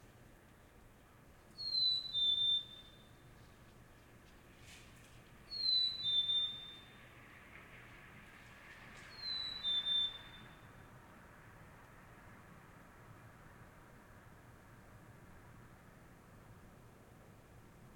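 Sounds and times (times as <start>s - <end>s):
bird call in a suburb: 1.6s - 3.1s, 5.5s - 6.9s, 9.1s - 10.5s.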